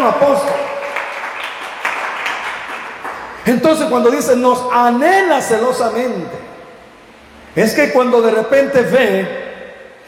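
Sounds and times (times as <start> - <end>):
speech: 0.0 - 0.7, 3.4 - 6.5, 7.6 - 9.4
audience applause: 0.0 - 3.4.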